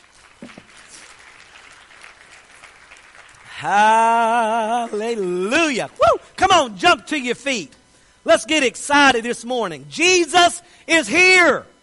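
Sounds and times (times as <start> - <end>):
audience clapping: 0.0 - 4.5, 5.5 - 6.6
speech: 3.6 - 11.7.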